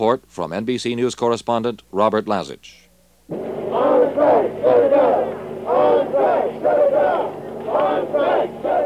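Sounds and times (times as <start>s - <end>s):
speech: 0.0s - 2.8s
striking students chanting in protest at San Francisco State College: 3.3s - 8.8s.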